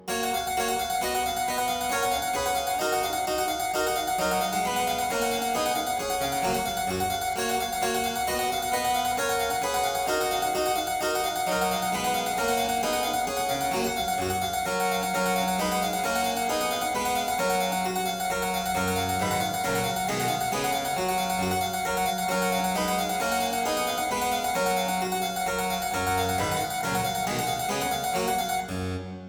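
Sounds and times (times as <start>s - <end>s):
harpsichord aria in G major: 0.0s - 29.2s.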